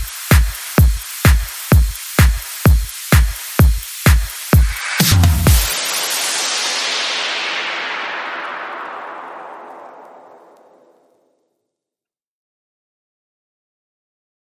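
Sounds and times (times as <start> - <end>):
music beat: 0.0 - 10.2.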